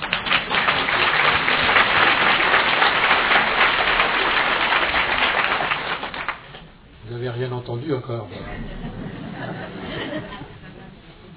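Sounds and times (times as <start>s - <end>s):
crowd applauding: 0.0s - 6.7s
speech: 7.9s - 9.3s
laughter: 8.3s - 11.3s.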